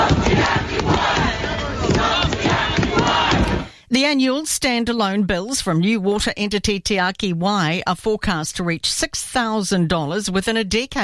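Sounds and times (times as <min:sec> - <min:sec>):
protest crowd chanting outside Parliament: 0:00.0 - 0:03.7
speech: 0:04.0 - 0:11.0.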